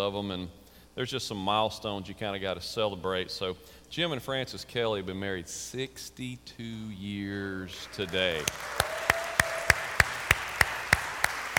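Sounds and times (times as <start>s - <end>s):
speech: 0.0s - 8.9s
audience applause: 8.0s - 11.5s.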